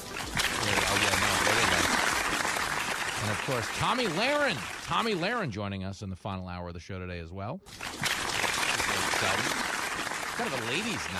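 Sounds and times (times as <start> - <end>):
crowd applauding: 0.0 - 5.5, 7.8 - 11.1
speech: 3.5 - 7.9, 9.2 - 9.6, 10.4 - 11.1.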